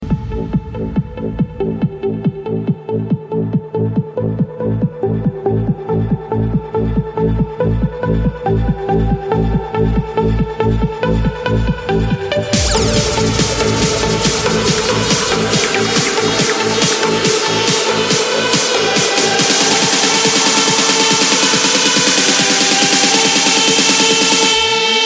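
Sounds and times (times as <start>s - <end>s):
hard dance music: 0.0s - 25.0s.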